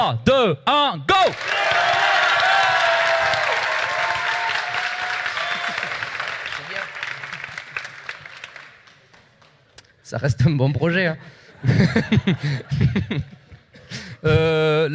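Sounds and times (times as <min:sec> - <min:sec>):
speech: 0:00.0 - 0:01.7, 0:10.1 - 0:13.4, 0:14.2 - 0:14.9
crowd applause: 0:01.3 - 0:09.6
crowd cheering and whooping: 0:01.5 - 0:06.3
laughter: 0:11.6 - 0:13.7.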